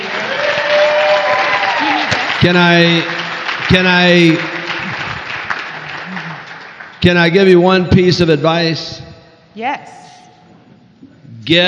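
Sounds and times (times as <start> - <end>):
whooping cheers: 0.0 - 2.3
crowd applause: 0.0 - 7.5
speech: 2.4 - 4.6, 7.0 - 9.0, 9.6 - 10.0, 11.5 - 11.6.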